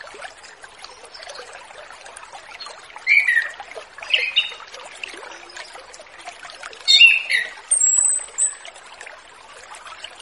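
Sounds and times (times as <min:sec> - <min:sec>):
Orange-headed thrush giving loud whistled phrases: 0:07.0 - 0:08.6.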